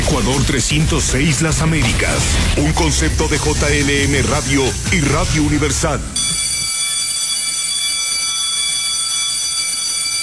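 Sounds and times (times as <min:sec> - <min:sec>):
speech: 0:00.1 - 0:06.3
electric bell ringing: 0:06.2 - 0:10.2.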